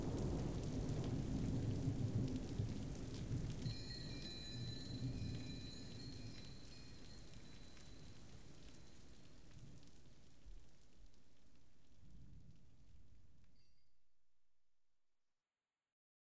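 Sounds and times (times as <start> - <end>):
thunder: 0.0 - 5.6
rain: 0.0 - 13.8.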